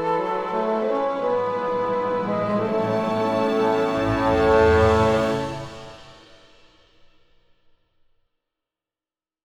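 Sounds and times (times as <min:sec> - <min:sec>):
playful magical cartoon film score music: 0:00.0 - 0:06.3.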